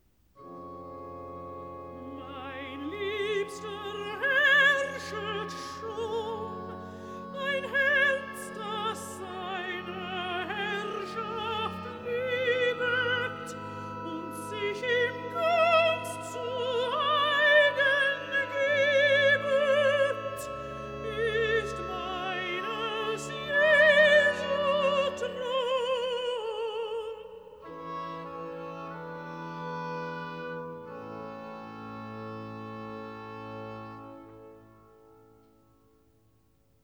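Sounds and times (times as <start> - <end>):
person singing recitative: 2.0 - 27.6.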